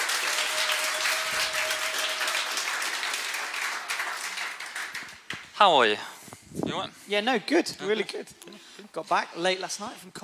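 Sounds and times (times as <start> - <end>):
audience applause: 0.0 - 5.3
speech: 5.6 - 8.4, 9.0 - 10.2.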